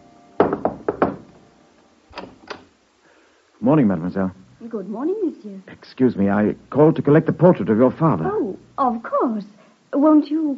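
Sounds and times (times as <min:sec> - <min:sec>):
knocking on a door: 0:00.4 - 0:01.4
speech: 0:03.6 - 0:10.5.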